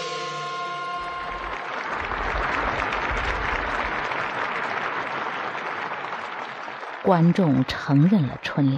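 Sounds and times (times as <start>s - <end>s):
audience cheering: 0.2s - 7.7s
audience applause: 0.3s - 8.4s
speech: 7.1s - 8.7s.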